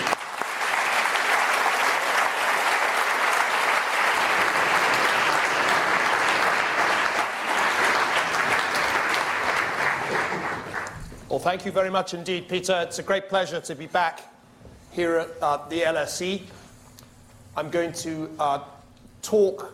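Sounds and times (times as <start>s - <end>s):
audience applause welcoming a speaker at the LSE: 0.0s - 11.1s
speech: 11.4s - 14.3s, 14.9s - 16.6s, 17.6s - 19.7s.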